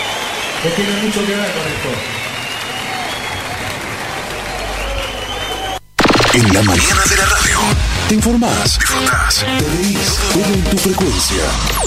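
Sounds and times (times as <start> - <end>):
applause: 0.0 - 5.8
speech: 0.6 - 2.2, 6.4 - 11.8.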